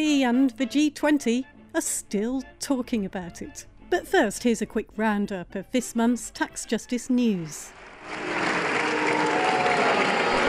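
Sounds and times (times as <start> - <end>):
speech: 0.0 - 8.4
parliament members booing: 8.0 - 10.4.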